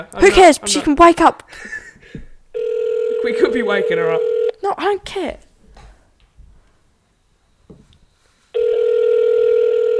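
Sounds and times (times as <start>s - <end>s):
speech: 0.0s - 2.2s, 3.2s - 5.4s
telephone ringing on an outgoing call: 2.5s - 4.6s, 8.6s - 9.9s.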